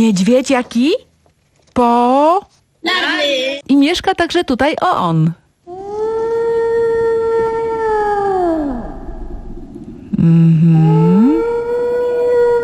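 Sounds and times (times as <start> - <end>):
speech: 0.0 - 1.1, 1.8 - 5.4, 10.2 - 11.5
whale song: 5.7 - 12.6.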